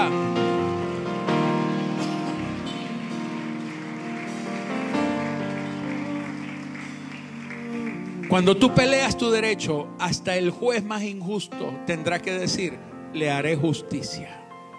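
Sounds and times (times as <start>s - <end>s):
audience applauding: 0.0s - 9.5s
speech: 8.3s - 14.4s.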